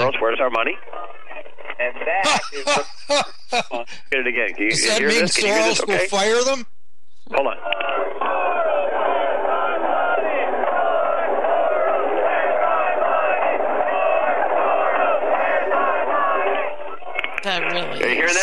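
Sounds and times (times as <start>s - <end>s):
speech: 0.1s - 1.1s, 1.8s - 8.2s, 17.5s - 18.4s
laughter: 2.1s - 6.4s, 18.0s - 18.4s
crowd chanting and shouting: 4.6s - 6.2s, 7.5s - 18.4s.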